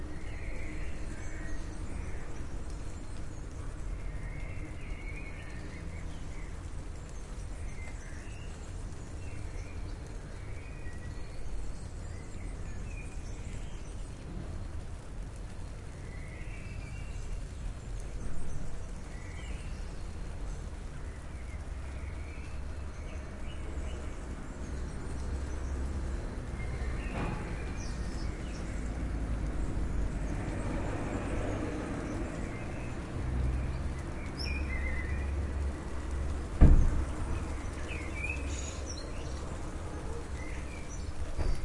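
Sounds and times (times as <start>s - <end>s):
birds: 0.0s - 41.6s
rain: 0.0s - 41.6s.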